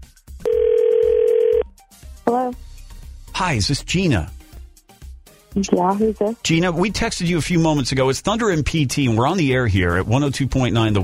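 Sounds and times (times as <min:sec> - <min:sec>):
phone call ringing: 0:00.4 - 0:01.6
phone dial tone: 0:00.4 - 0:01.7
speech: 0:02.3 - 0:02.6, 0:03.4 - 0:04.4, 0:05.5 - 0:11.0.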